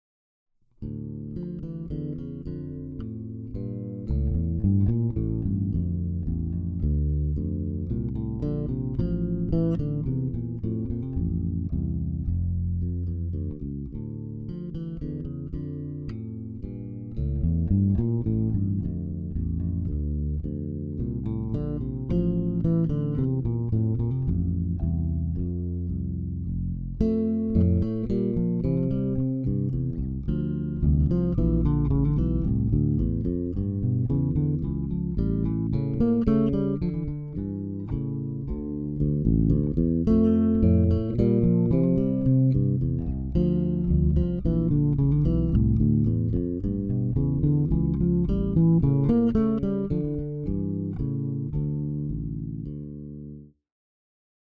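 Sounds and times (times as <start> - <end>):
bass duet: 0.8 - 53.5.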